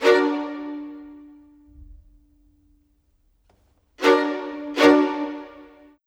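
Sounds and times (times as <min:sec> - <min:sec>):
orchestral violins: 0:00.0 - 0:02.2, 0:04.0 - 0:06.0.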